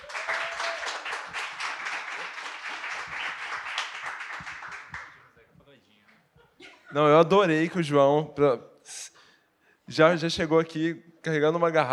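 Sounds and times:
audience applause: 0.0s - 5.3s
speech: 6.9s - 8.7s, 9.9s - 11.9s.

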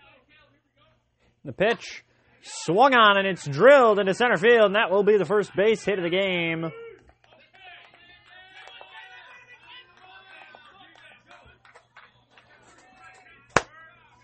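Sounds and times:
speech: 1.4s - 6.8s
loud hand clap swatting a mosquito: 11.0s - 12.5s.

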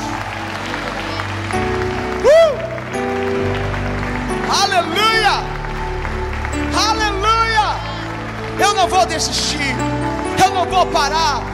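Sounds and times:
audience applauding: 0.0s - 11.5s
sustained organ-like music: 0.0s - 11.5s
speech: 6.7s - 7.4s, 8.6s - 10.0s, 10.6s - 11.5s.

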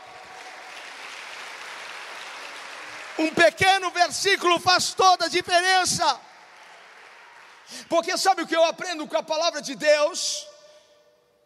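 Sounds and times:
audience clapping in worship: 0.0s - 8.5s
speech: 3.2s - 6.3s, 7.7s - 10.5s.

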